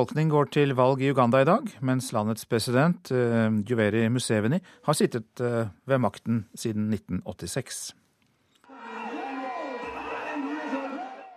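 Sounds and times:
speech: 0:00.0 - 0:08.0
crowd of supporters cheering: 0:08.7 - 0:11.3.

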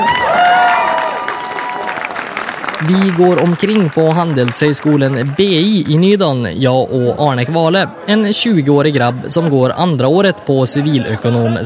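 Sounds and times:
crowd applause: 0:00.0 - 0:06.2
speech: 0:02.9 - 0:11.6.

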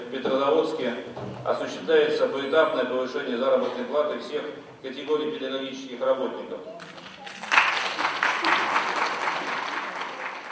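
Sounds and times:
speech: 0:00.1 - 0:07.1
polite applause: 0:06.8 - 0:10.5.

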